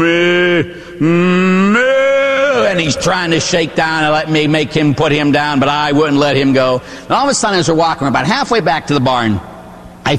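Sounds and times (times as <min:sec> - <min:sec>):
speech: 0:00.0 - 0:01.4, 0:02.8 - 0:09.5
man imitating calf mooing: 0:00.0 - 0:02.9.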